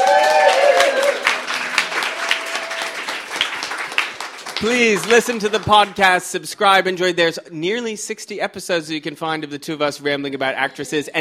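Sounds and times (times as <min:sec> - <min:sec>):
whistles and cheers: 0:00.0 - 0:01.4
live audience applause: 0:00.0 - 0:06.2
speech: 0:04.6 - 0:11.2.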